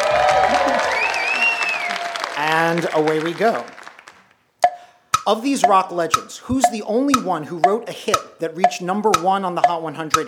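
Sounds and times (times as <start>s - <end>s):
game show studio audience applauding and cheering: 0.0s - 4.4s
speech: 2.7s - 3.8s, 5.3s - 10.2s.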